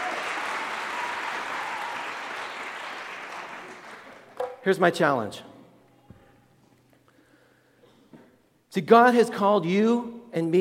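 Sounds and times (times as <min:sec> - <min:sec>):
audience applause: 0:00.0 - 0:04.4
speech: 0:04.6 - 0:05.5, 0:08.8 - 0:10.5.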